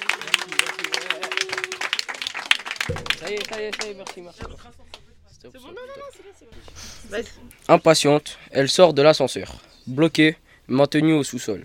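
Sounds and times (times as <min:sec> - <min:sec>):
audience applause: 0:00.0 - 0:04.4
steady sustained tone: 0:02.8 - 0:08.5
speech: 0:03.2 - 0:11.6.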